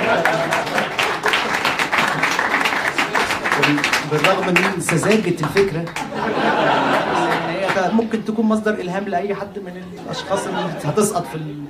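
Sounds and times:
laughter: 0.0 - 2.5, 5.9 - 8.4, 9.8 - 11.6
crowd audience applause: 0.0 - 7.9
speech: 0.1 - 0.6, 3.7 - 6.9, 7.8 - 11.6.

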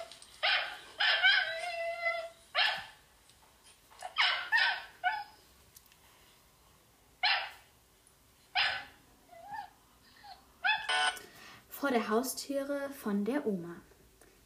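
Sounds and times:
puppy barking: 0.4 - 1.7, 2.5 - 3.0, 4.1 - 5.3, 7.2 - 7.7, 8.5 - 9.0, 10.7 - 11.1
speech: 11.9 - 13.9.

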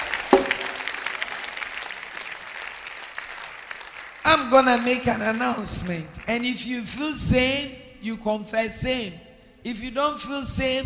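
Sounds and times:
audience clapping: 0.0 - 7.0
speech: 4.4 - 10.8.

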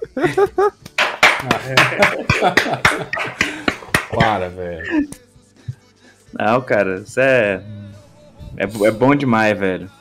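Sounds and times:
laughter: 0.0 - 5.2
speech: 0.2 - 3.5, 4.2 - 5.2, 6.4 - 7.8, 8.6 - 9.9
applause, hands clapping: 0.8 - 4.5.

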